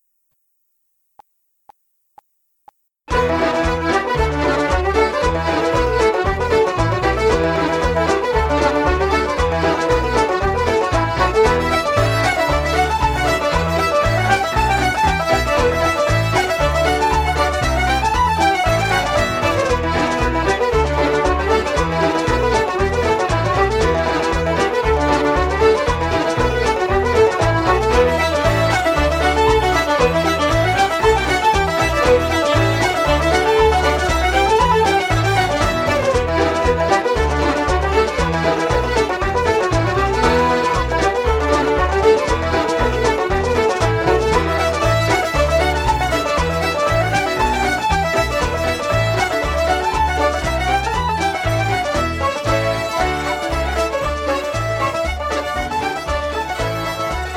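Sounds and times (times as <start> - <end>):
Irish ceili reels backing track in E minor: 1.2 - 57.3.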